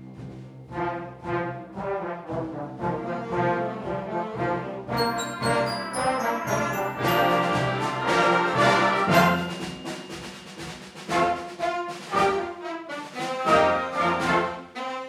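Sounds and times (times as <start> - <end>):
band playing: 0.1 - 15.0
bells ringing: 5.0 - 10.8.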